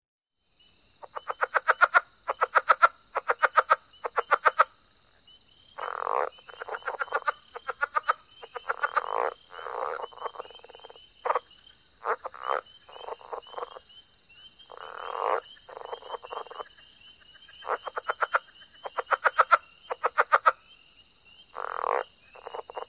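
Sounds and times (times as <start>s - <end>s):
Southern leopard frog chuckling croaks: 1.0s - 22.8s.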